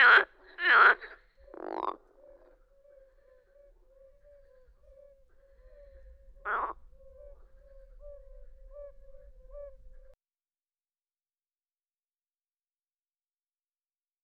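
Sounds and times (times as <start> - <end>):
marsh frog calling in pulsed laughing croaks: 0.0 - 10.2.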